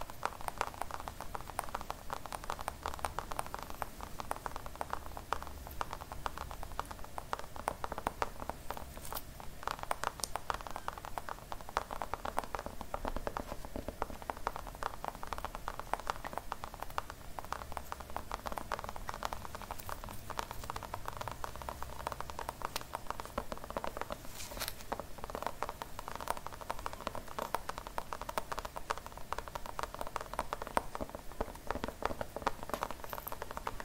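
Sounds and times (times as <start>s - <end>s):
clicks and crackles: 0.0s - 33.8s
ASMR scalp massage scratching and brushing: 24.1s - 24.9s.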